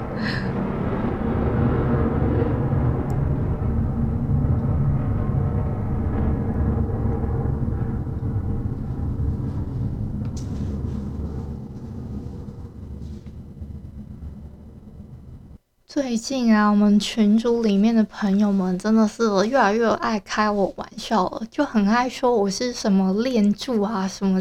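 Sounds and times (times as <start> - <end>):
fighter jet flying overhead: 0.0 - 15.6
speech: 16.0 - 24.4.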